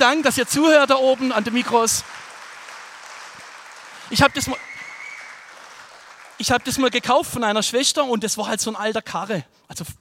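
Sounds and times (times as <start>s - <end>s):
speech: 0.0s - 2.3s, 4.1s - 4.7s, 6.4s - 10.0s
audience applause: 0.0s - 7.8s.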